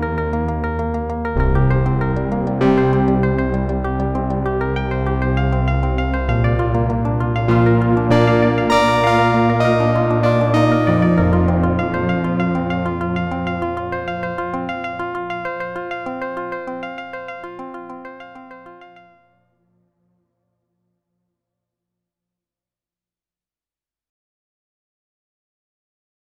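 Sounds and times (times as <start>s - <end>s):
dual layered piano: 0.0s - 18.6s.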